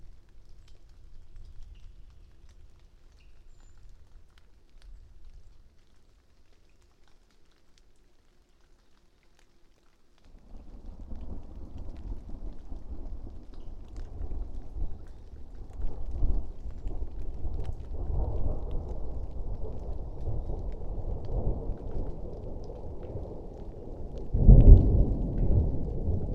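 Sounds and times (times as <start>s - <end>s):
thunder east of Bear Mountain: 14.1s - 26.3s.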